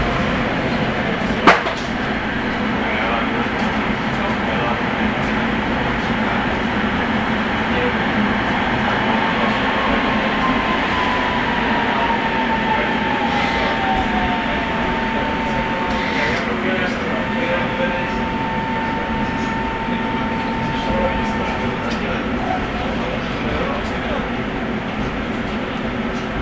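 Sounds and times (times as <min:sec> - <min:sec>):
train noise heard from sink in toilet: 0:00.0 - 0:26.4.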